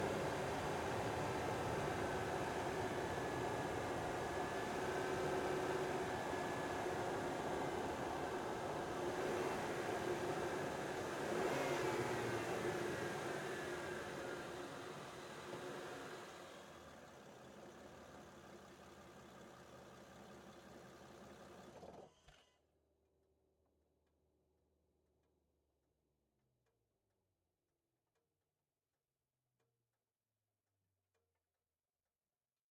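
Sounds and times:
2005 Aston Martin DB9 engine onboard: 0.0 - 21.8.

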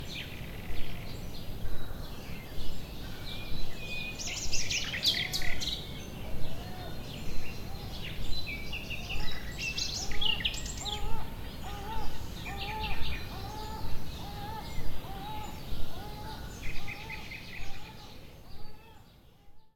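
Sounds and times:
nature ambience: 0.0 - 19.7
seagulls: 9.0 - 19.0.

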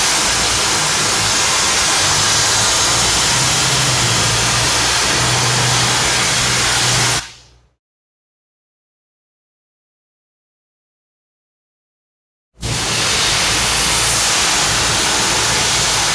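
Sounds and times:
industrial factory machine cutting steel: 0.0 - 7.6, 12.6 - 16.1.

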